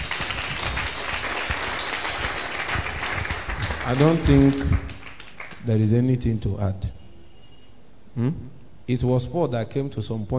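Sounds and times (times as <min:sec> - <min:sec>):
crowd applauding: 0:00.0 - 0:05.7
speech: 0:03.9 - 0:04.9, 0:05.6 - 0:07.0, 0:08.2 - 0:10.3.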